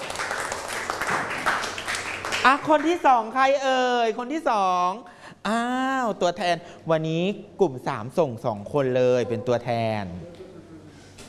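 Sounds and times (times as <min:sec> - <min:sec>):
students in a classroom clapping for a classmate: 0:00.0 - 0:03.0
speech: 0:02.4 - 0:10.3.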